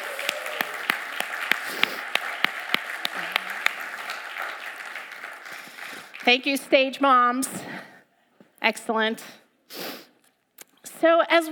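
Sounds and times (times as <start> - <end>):
audience round of applause: 0.0 - 6.5
speech: 6.3 - 7.9, 8.6 - 9.8, 11.0 - 11.5.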